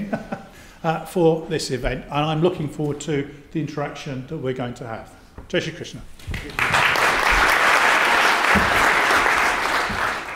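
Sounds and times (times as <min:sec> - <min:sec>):
speech: 0:00.8 - 0:06.7
audience applause: 0:06.4 - 0:10.3.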